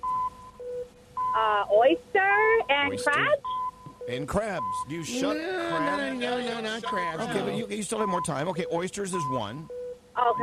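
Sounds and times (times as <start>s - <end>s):
speech: 1.4s - 3.5s, 4.1s - 10.4s
game timer electronic beeps: 2.5s - 10.4s.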